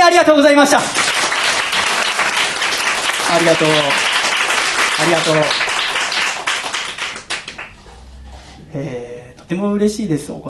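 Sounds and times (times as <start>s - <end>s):
speech: 0.2s - 1.1s, 3.3s - 4.1s, 5.0s - 5.7s, 8.7s - 10.4s
audience applause: 0.8s - 7.8s.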